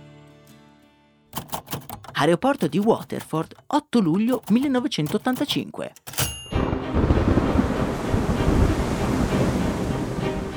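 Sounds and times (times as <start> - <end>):
speech: 2.2 - 6.1
heavy rain: 6.6 - 10.5.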